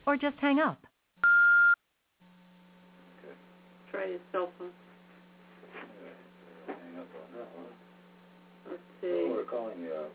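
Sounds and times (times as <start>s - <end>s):
speech: 0.1s - 0.9s, 4.0s - 4.8s, 5.7s - 7.9s, 8.6s - 10.1s
answering machine message tone: 1.2s - 1.8s.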